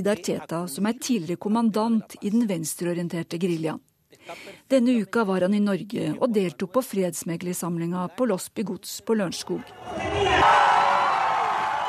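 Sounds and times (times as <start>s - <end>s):
speech: 0.0s - 10.8s
Santos supporters cheering presidential election win: 9.7s - 11.8s.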